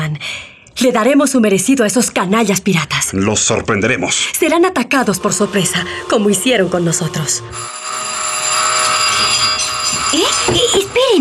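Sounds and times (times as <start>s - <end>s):
speech: 0.8s - 8.0s
loud continuous buzzing alarm: 5.0s - 11.1s.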